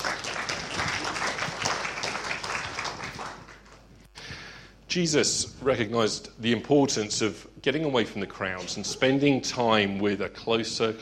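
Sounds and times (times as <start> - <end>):
audience applause: 0.0 - 3.8
speech: 4.9 - 11.0.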